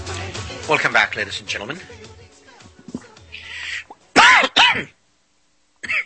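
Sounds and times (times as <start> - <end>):
speech: 0.7 - 2.1
person choking and coughing: 4.2 - 5.0, 5.8 - 6.0.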